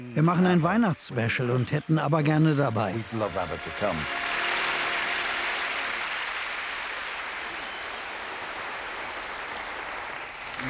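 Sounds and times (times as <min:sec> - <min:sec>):
speech: 0:00.2 - 0:04.2
studio audience applause: 0:02.6 - 0:10.6.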